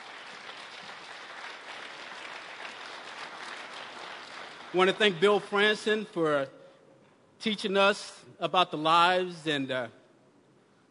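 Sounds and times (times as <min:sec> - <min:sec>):
crowd applauding: 0:00.0 - 0:05.7
speech: 0:04.7 - 0:06.6, 0:07.4 - 0:10.0.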